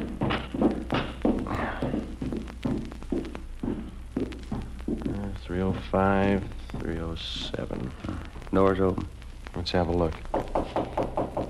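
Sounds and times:
footsteps climbing a flight of stairs: 0:00.0 - 0:11.4
low constant hum: 0:00.0 - 0:11.4
speech: 0:05.9 - 0:10.3.

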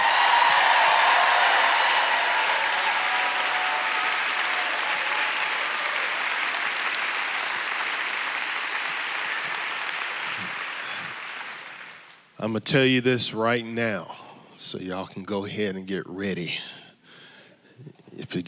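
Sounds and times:
large church crowd applauding and cheering in a reverberant room: 0:00.0 - 0:12.3
speech: 0:12.4 - 0:16.8, 0:17.8 - 0:18.4.

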